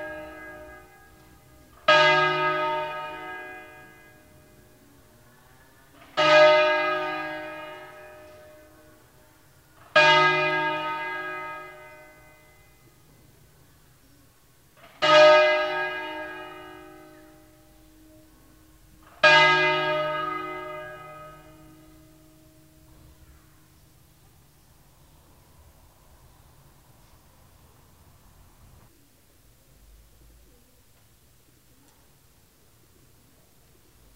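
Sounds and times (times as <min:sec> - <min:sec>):
church bells ringing for a funeral: 0:00.0 - 0:05.2, 0:05.9 - 0:13.3, 0:14.7 - 0:24.3.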